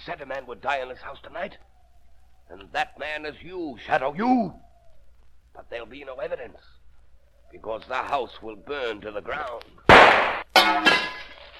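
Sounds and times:
speech: 0.0s - 1.8s, 2.5s - 4.7s, 5.6s - 6.8s, 7.5s - 11.1s
lamp breaking: 9.9s - 11.5s.

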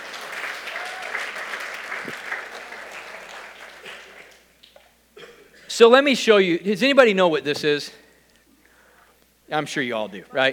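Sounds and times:
audience clapping hands: 0.0s - 4.9s
speech: 5.8s - 8.0s, 9.5s - 10.5s.

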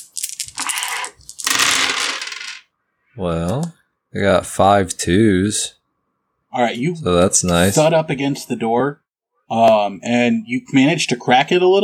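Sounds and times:
dice rolling: 0.0s - 2.6s
speech: 3.2s - 5.8s, 6.5s - 11.8s.

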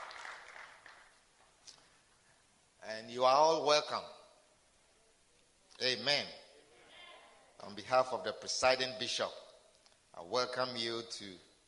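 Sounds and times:
audience clapping hands: 0.0s - 1.6s
speech: 2.9s - 4.2s, 5.8s - 6.4s, 7.6s - 9.4s, 10.2s - 11.5s.

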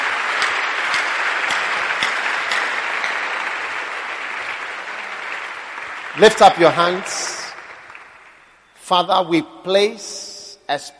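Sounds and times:
audience clapping: 0.0s - 8.6s
speech: 6.2s - 7.4s, 8.9s - 10.9s.

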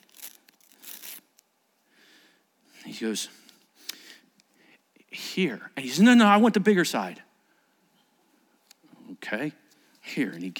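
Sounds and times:
paper ticket being ripped: 0.0s - 1.2s
speech: 2.9s - 3.4s, 5.4s - 7.3s, 9.3s - 10.5s.

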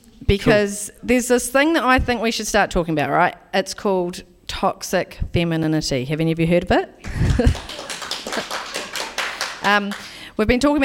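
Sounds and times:
speech: 0.3s - 7.8s, 9.6s - 10.8s
laughter: 7.0s - 9.2s
studio audience clapping: 7.2s - 10.2s.

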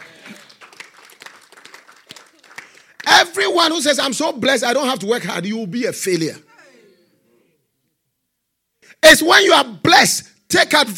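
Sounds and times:
faint irregular clapping from a church congregation during a sermon: 0.0s - 3.1s
speech: 3.2s - 6.5s, 9.1s - 10.9s.

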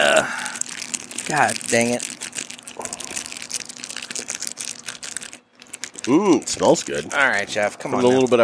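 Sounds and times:
cellophane crinkling as it is peeled off an Argonese Maduro cigar: 0.0s - 8.4s
speech: 1.3s - 2.2s, 6.1s - 8.4s.

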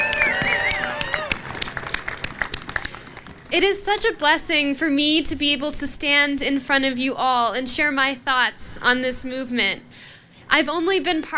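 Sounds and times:
crowd applause: 0.0s - 3.6s
speech: 3.5s - 11.3s.

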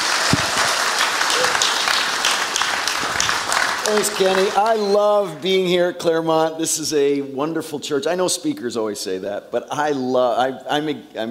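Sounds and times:
audience applause welcoming a speaker at a church: 0.0s - 5.4s
speech: 3.9s - 11.2s.

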